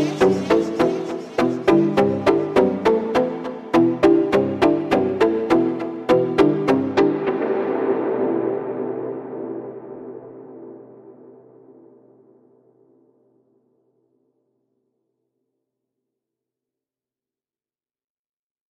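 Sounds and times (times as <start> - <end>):
slowed montagem music: 0.0 - 13.2.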